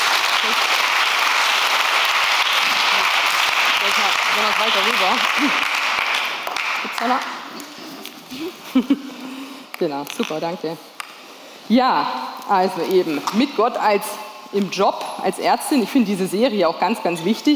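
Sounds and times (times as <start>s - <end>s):
audience applause: 0.0s - 7.2s
speech: 4.0s - 5.8s, 6.9s - 7.7s, 8.3s - 9.1s, 9.8s - 10.9s, 11.7s - 17.5s.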